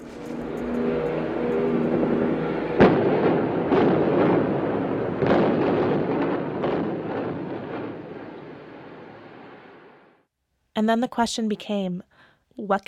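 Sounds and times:
demolition explosion of supporting columns of an 11-story vacant high-rise: 0:00.0 - 0:10.1
speech: 0:10.8 - 0:12.8.

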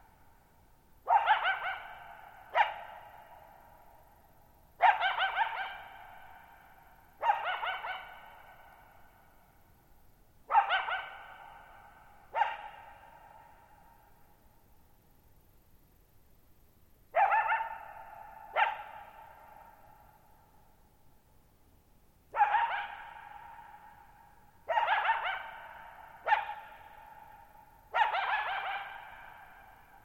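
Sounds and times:
coyote barking and yipping with echo: 0:01.1 - 0:03.7, 0:04.8 - 0:09.0, 0:10.5 - 0:14.0, 0:17.1 - 0:20.2, 0:22.3 - 0:30.0.

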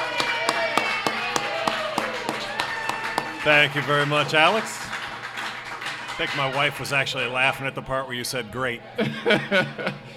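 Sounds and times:
live audience applause: 0:00.0 - 0:07.7
speech: 0:03.4 - 0:04.8, 0:06.2 - 0:10.1
laughter: 0:08.8 - 0:10.1.

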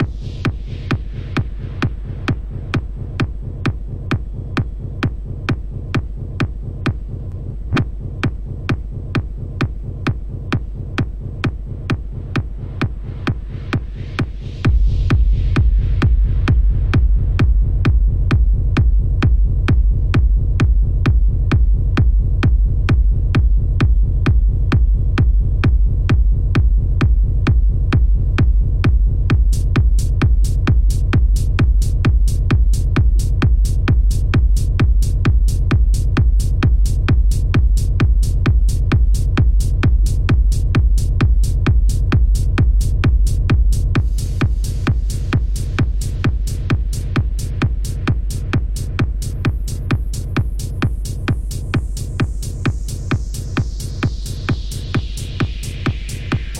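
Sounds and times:
techno vinyl DJ mix: 0:00.0 - 0:56.5.

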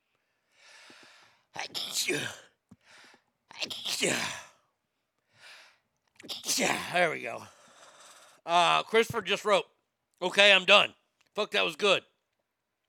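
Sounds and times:
faint breath: 0:00.1 - 0:01.5, 0:02.7 - 0:03.3, 0:05.2 - 0:05.9, 0:07.4 - 0:08.5
person sneezing: 0:01.6 - 0:02.6, 0:03.5 - 0:04.6, 0:06.2 - 0:07.0
speech: 0:02.0 - 0:02.4, 0:03.6 - 0:04.4, 0:06.6 - 0:07.6, 0:08.4 - 0:12.1.

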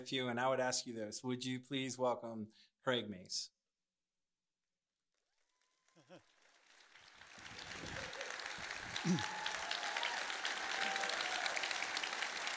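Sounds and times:
speech: 0:00.0 - 0:03.6, 0:06.1 - 0:06.3, 0:09.0 - 0:09.4
audience applause: 0:05.5 - 0:12.5.

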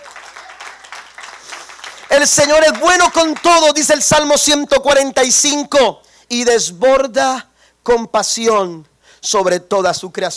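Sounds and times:
audience applauding: 0:00.0 - 0:04.0
speech: 0:02.2 - 0:10.3.

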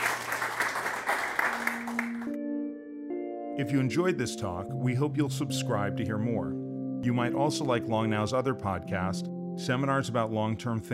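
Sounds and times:
audience applause: 0:00.0 - 0:02.4
speech: 0:03.6 - 0:10.9.

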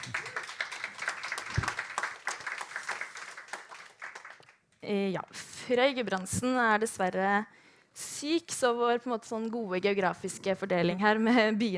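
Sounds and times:
audience applause: 0:00.0 - 0:04.6
speech: 0:04.8 - 0:11.7.

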